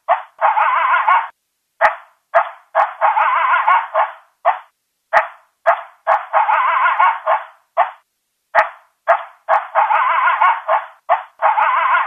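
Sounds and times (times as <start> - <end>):
coyote barking and yelping: 0.0 - 12.0.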